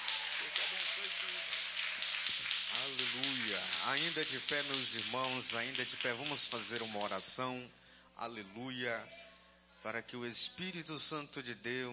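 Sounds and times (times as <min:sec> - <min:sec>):
audience applauding: 0:00.0 - 0:07.2
speech: 0:02.9 - 0:09.2, 0:09.8 - 0:11.9.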